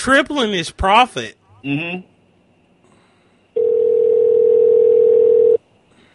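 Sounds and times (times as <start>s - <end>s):
speech: 0.0s - 2.1s
telephone dial tone: 3.6s - 5.6s.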